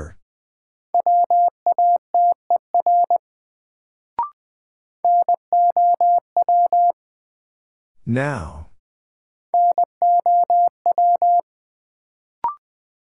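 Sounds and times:
Morse code beeps at 20 wpm: 0:01.0 - 0:03.2, 0:05.1 - 0:07.0, 0:09.6 - 0:11.4
speech: 0:08.1 - 0:08.6.

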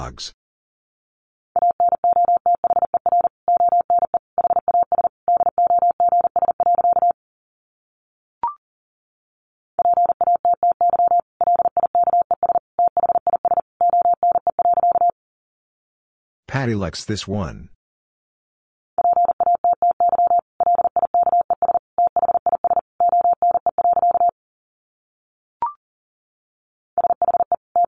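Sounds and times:
speech: 0:00.0 - 0:00.4, 0:16.6 - 0:17.8
fast Morse code beeps at 40 wpm: 0:01.6 - 0:07.2, 0:09.8 - 0:15.1, 0:19.0 - 0:24.3, 0:27.0 - 0:27.8.

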